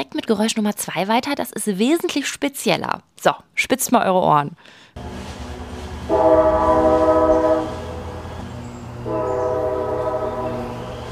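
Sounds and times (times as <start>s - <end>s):
speech: 0.0s - 5.4s, 6.1s - 7.0s
classic old train horn blasts: 5.0s - 11.1s
rail cars rolling with a steady low rumble: 5.0s - 11.1s.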